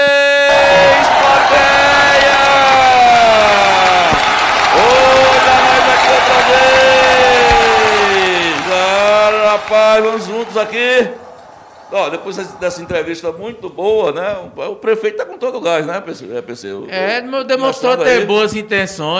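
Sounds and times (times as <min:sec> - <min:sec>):
studio audience cheering and whooping: 0:00.0 - 0:14.1
studio audience applause: 0:00.4 - 0:13.8
speech: 0:10.0 - 0:11.2, 0:11.9 - 0:19.1.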